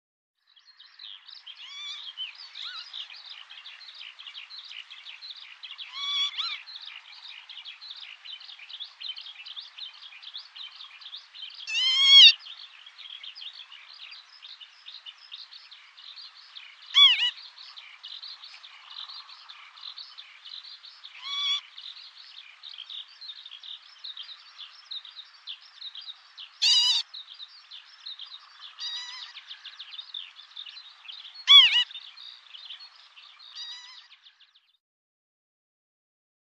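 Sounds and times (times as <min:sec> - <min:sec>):
many small birds chattering: 0:00.4 - 0:34.8
northern lapwing call: 0:05.8 - 0:06.6, 0:11.7 - 0:12.4, 0:16.9 - 0:17.4, 0:21.2 - 0:21.7, 0:26.6 - 0:27.1, 0:28.8 - 0:29.6, 0:31.4 - 0:32.0, 0:33.6 - 0:34.1.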